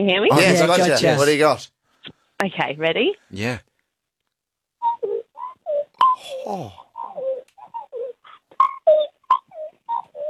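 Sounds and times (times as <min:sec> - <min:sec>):
speech: 0:00.0 - 0:01.7, 0:02.4 - 0:03.7, 0:06.2 - 0:06.8
person imitating a magpie call: 0:04.9 - 0:10.2.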